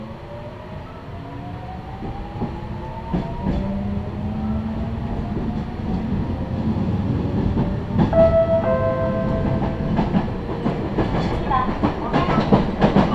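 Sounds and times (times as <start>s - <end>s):
train rumble: 0.0s - 13.1s
rail clacks: 1.6s - 13.1s.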